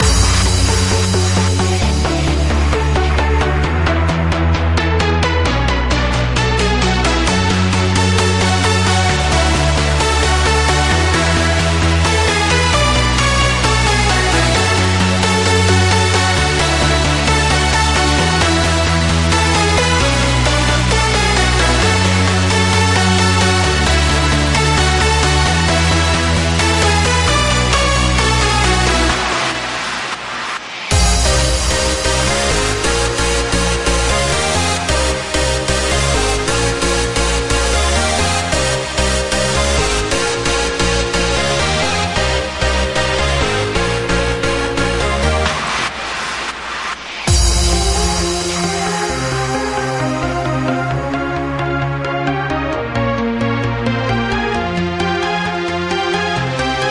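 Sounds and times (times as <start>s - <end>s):
future house music: 0.0s - 56.9s.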